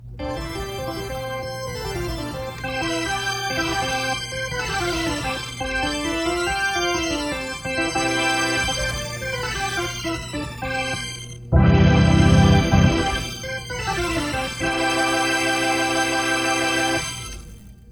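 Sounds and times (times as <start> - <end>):
organ: 0.0 - 17.4.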